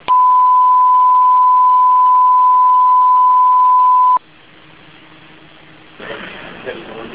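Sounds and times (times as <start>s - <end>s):
tornado warning alert: 0.0s - 4.2s.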